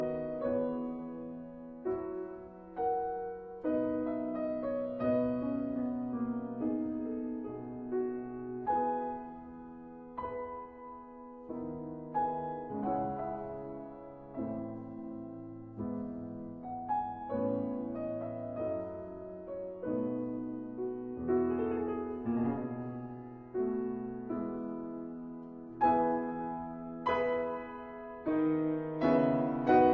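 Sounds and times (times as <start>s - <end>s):
sarabande in E major: 0.0s - 29.9s.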